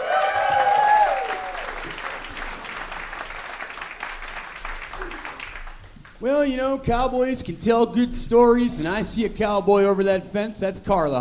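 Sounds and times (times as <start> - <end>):
high whistle or whoop: 0.0 - 1.7
audience applause: 0.0 - 6.2
speech: 6.2 - 11.1.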